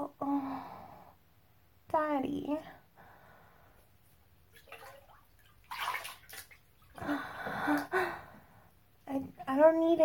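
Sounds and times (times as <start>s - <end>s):
speech: 2.2s - 2.8s
bathwater splashing and sloshing in a tub during washing: 4.1s - 8.1s, 8.9s - 10.0s.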